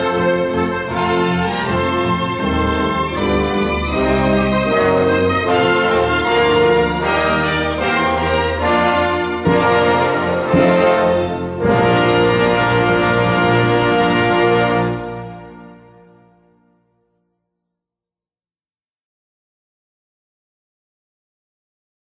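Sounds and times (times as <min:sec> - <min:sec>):
anthem: 0:00.0 - 0:15.8.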